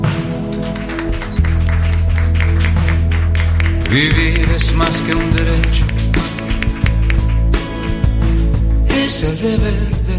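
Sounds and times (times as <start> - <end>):
audience applause: 0.1 - 8.1
speech: 3.9 - 5.9, 9.1 - 10.1.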